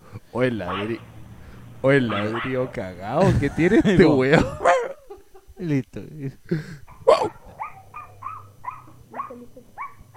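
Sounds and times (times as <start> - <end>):
speech: 0.3 - 1.1, 1.8 - 4.6, 5.6 - 7.4
dog barking: 0.6 - 1.1, 2.0 - 2.8, 4.6 - 5.2, 6.9 - 10.1
laughter: 3.1 - 7.4.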